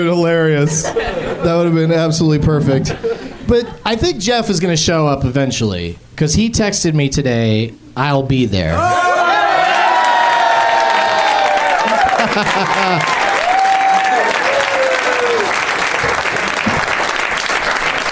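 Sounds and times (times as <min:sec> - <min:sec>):
speech: 0:00.0 - 0:09.1, 0:12.4 - 0:13.2
laughter: 0:00.6 - 0:01.9, 0:02.7 - 0:03.8, 0:10.8 - 0:14.9, 0:15.8 - 0:17.2
audience applause and cheering: 0:08.8 - 0:18.0.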